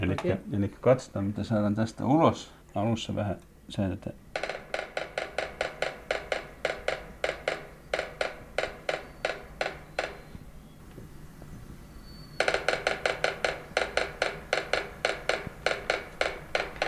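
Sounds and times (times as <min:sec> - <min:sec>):
speech: 0:00.0 - 0:04.5
sapsucker drumming on a tree: 0:04.3 - 0:10.8, 0:12.2 - 0:16.8.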